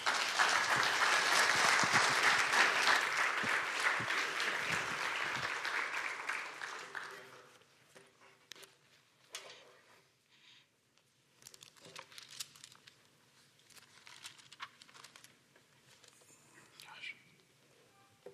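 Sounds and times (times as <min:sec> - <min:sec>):
audience applause at a Miami Town gathering welcoming a speaker: 0:00.0 - 0:07.6.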